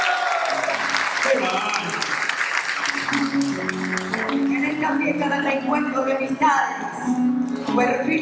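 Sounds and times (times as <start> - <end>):
audience applause: 0.0 - 4.8
speech: 4.9 - 7.2, 7.8 - 8.2.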